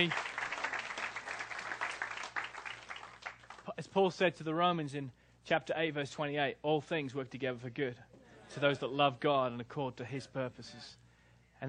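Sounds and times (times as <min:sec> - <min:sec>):
speech: 0:00.0 - 0:00.2, 0:03.8 - 0:11.0
audience clapping: 0:00.0 - 0:03.8.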